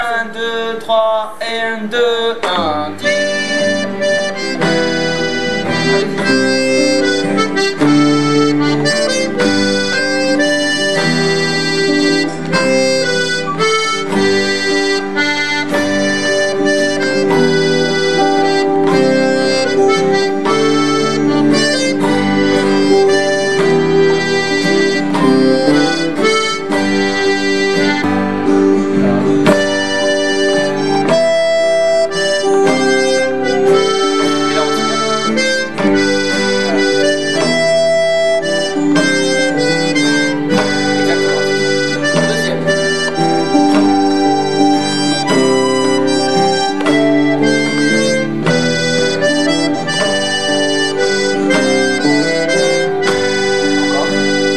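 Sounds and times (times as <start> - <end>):
improvised Irish mazurka: 0.0 - 54.5.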